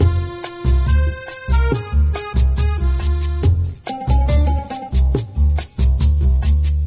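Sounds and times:
Italian music: 0:00.0 - 0:06.8.

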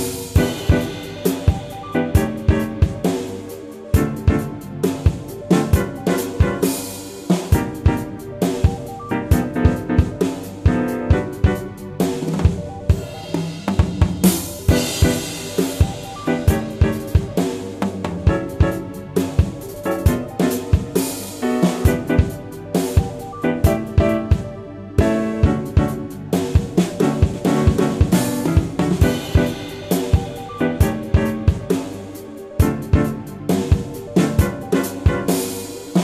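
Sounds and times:
melody: 0:00.1 - 0:36.0.

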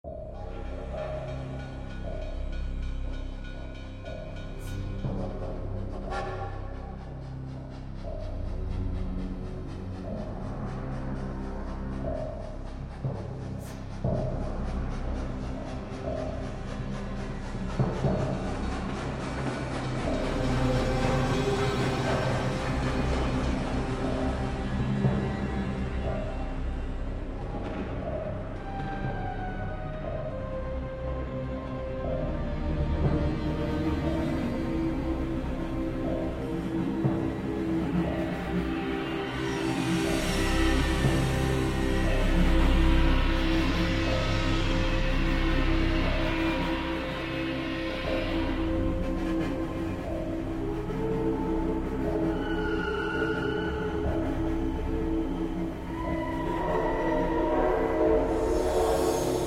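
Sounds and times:
music: 0:00.0 - 0:59.4.

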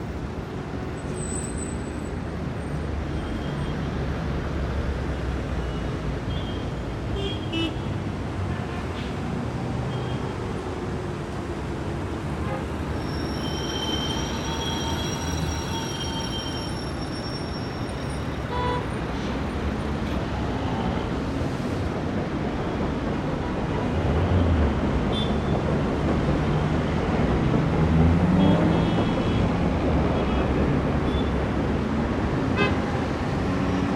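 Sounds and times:
street traffic ambience: 0:00.0 - 0:33.9.

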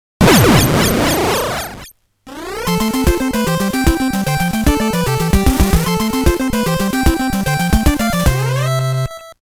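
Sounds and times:
game over sound: 0:00.2 - 0:09.4.

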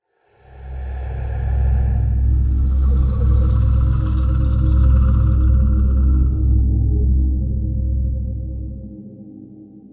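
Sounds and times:
music: 0:00.0 - 0:09.9
whoosh: 0:00.3 - 0:06.6.

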